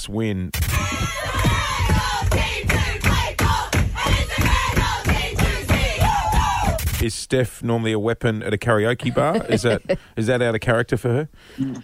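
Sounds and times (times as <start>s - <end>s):
speech: 0.0s - 2.6s, 7.0s - 11.8s
team singing along on a bus: 0.7s - 6.8s
laughter: 9.0s - 10.1s.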